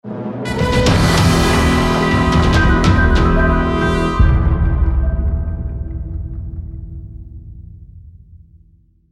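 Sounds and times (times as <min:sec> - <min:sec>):
game music stinger: 0:00.2 - 0:07.4.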